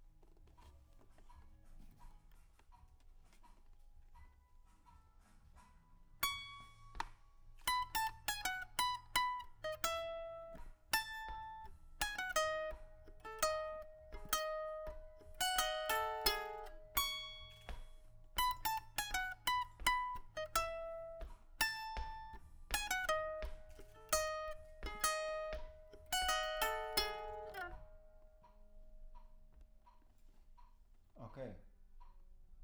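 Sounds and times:
guitar: 5.6s - 29.8s.

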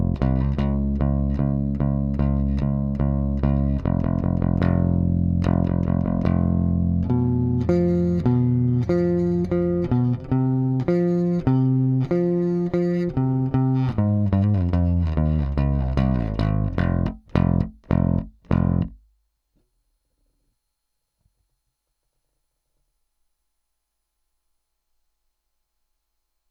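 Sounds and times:
bass: 0.0s - 19.1s.

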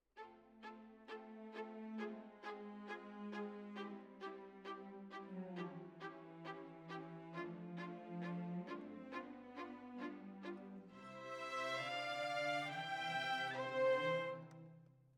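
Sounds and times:
violins: 0.2s - 14.7s.

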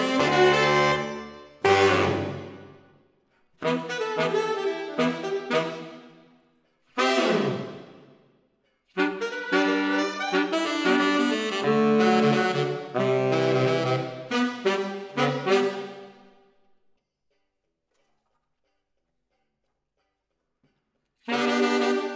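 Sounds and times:
saxophones playing: 0.0s - 2.8s, 3.6s - 6.2s, 7.0s - 8.0s, 9.0s - 16.2s, 21.3s - 22.1s.

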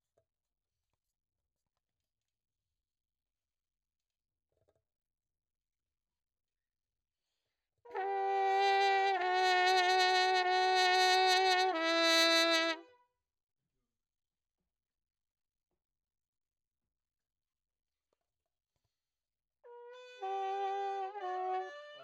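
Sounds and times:
trumpet: 7.9s - 13.0s, 19.7s - 22.0s.

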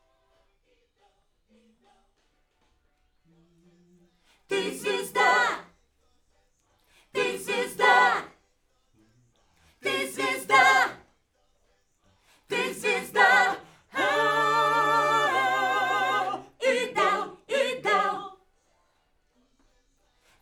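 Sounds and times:
backing vocals on AKG microphone: 4.5s - 5.7s, 7.2s - 8.3s, 9.8s - 11.0s, 12.5s - 18.4s.

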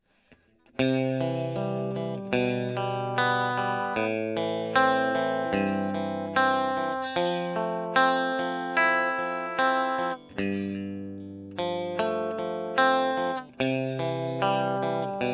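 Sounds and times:
electric guitar: 0.3s - 15.3s.

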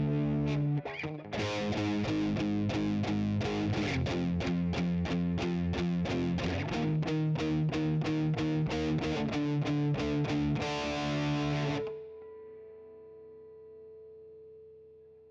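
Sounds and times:
guitar: 0.0s - 15.2s.

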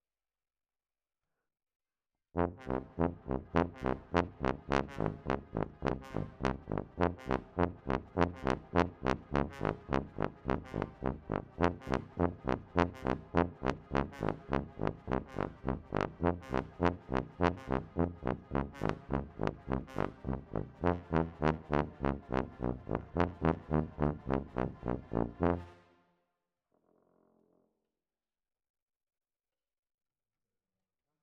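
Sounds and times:
tuba: 2.4s - 26.0s.

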